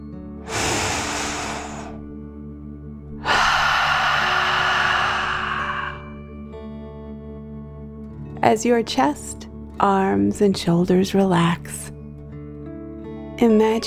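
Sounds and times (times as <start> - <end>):
deep breath in and out: 0.4 - 2.2, 3.2 - 6.4
speech: 8.5 - 11.9, 13.4 - 13.8.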